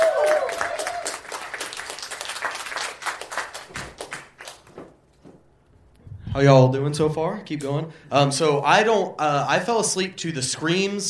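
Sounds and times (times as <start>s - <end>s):
crowd cheering: 0.0s - 4.0s
crowd applause: 0.0s - 4.6s
speech: 6.4s - 11.0s.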